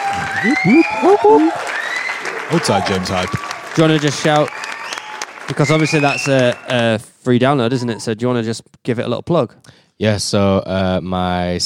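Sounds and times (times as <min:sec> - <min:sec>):
applause sound effect: 0:00.0 - 0:07.0
speech: 0:00.4 - 0:01.7, 0:02.5 - 0:04.6, 0:05.5 - 0:11.6.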